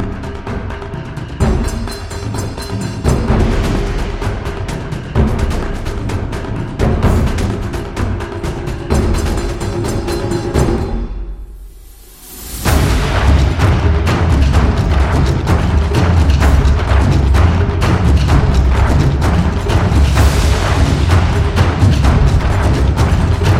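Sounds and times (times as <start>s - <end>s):
Japanese taiko drums: 0.0s - 11.8s, 12.6s - 23.5s.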